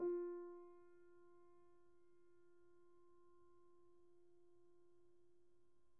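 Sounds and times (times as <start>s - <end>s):
Steinway piano played pianissimo: 0.0s - 0.8s.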